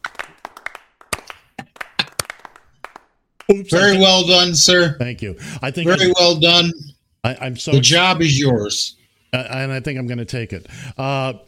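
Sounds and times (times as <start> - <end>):
one person clapping hands: 0.0 - 3.6
speech: 3.5 - 11.4.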